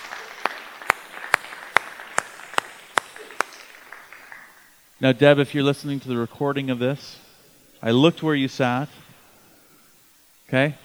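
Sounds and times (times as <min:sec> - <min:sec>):
audience applause: 0:00.0 - 0:04.8
speech: 0:05.0 - 0:07.2, 0:07.8 - 0:09.0, 0:10.5 - 0:10.8.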